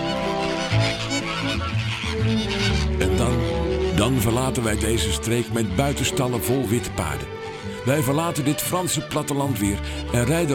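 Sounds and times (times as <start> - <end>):
flamingo colony squabbling with goose-like honks: 0.0 - 10.5
speech: 4.0 - 10.5.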